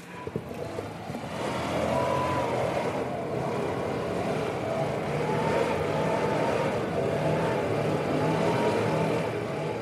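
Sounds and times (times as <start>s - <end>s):
leaf blower running across the street: 0.1s - 9.8s.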